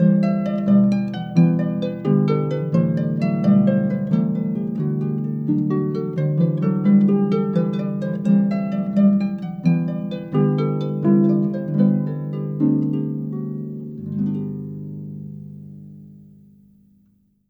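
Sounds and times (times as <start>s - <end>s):
solo harp: 0.0s - 16.9s.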